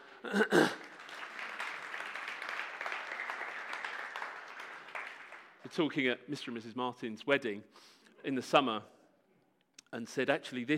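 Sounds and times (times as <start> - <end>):
church congregation applauding at a morning service to welcome a married couple: 0.0 - 5.9
speech: 0.2 - 0.8, 5.8 - 9.0, 9.9 - 10.7.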